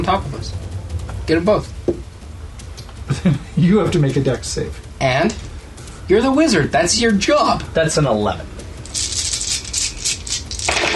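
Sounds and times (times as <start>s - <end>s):
speech: 0.0s - 0.7s, 1.3s - 1.8s, 3.2s - 5.5s, 6.1s - 9.1s
fistful of dice rattling and spilling out: 8.8s - 10.9s.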